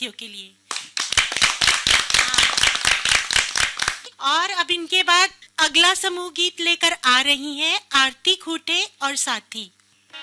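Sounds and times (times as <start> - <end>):
speech: 0.0 - 0.6, 4.2 - 9.8
loud audience clapping: 0.7 - 4.1.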